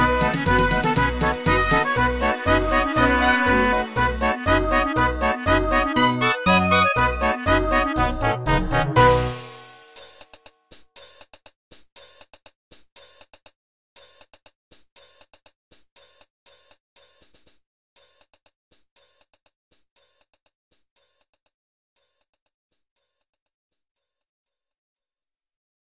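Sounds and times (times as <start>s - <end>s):
fanfare: 0.0s - 10.0s.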